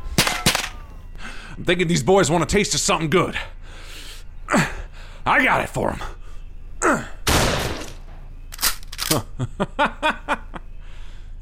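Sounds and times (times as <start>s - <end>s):
speech: 1.6s - 3.9s, 4.5s - 6.2s, 9.1s - 10.3s
gunfire: 7.3s - 8.0s.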